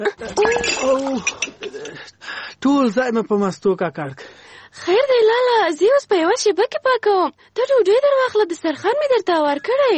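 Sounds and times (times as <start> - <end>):
speech: 0.0 - 1.4, 2.6 - 9.9
crockery clinking as a bowl of yogurt is handed over: 0.0 - 2.0.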